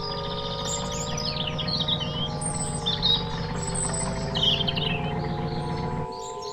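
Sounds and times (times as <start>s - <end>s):
low hum and rumble like an idling motor: 0.0s - 6.5s
robin chirping: 0.0s - 6.5s.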